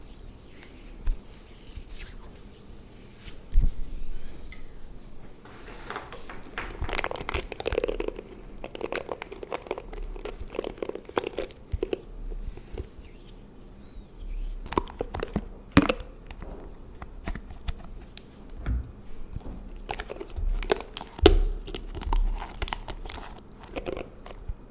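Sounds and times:
low steady hum: 0:00.0 - 0:24.7
crinkling, tapping and brushing for skin and hair pampering: 0:04.5 - 0:13.0, 0:14.6 - 0:24.7.

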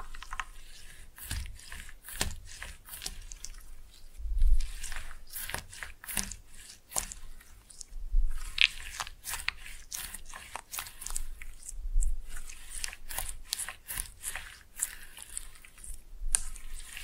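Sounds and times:
slime being pressed and mixed: 0:00.0 - 0:17.0.

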